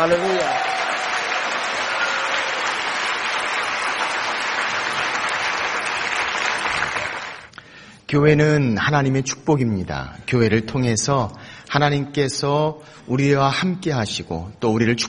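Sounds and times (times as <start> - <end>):
speech: 0.0 - 0.7, 8.1 - 15.0
audience applause: 0.0 - 7.5.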